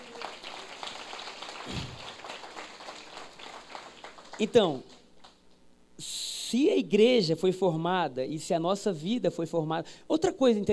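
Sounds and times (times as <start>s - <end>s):
audience applause: 0.0s - 4.5s
speech: 4.4s - 5.0s, 6.5s - 10.7s.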